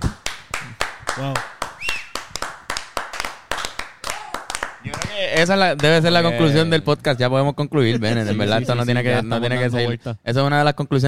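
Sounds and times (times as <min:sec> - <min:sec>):
audience applause: 0:00.2 - 0:06.2
speech: 0:01.2 - 0:01.5, 0:05.2 - 0:11.0.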